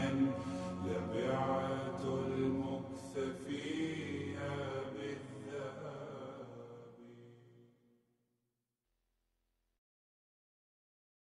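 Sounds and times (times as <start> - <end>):
slowed nasheed singing with reverb: 0.0 - 7.2.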